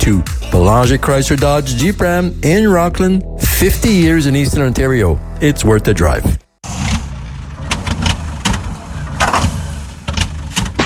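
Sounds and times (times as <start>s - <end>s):
speech: 0.0s - 6.4s
engine that won't start cranking and sputtering: 6.6s - 10.8s.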